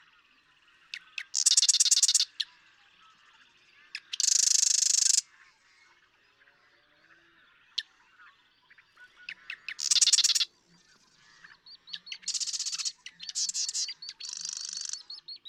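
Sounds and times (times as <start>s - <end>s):
marsh wren rattling song: 0.9s - 2.3s, 4.0s - 5.2s, 9.3s - 10.5s, 11.9s - 15.4s.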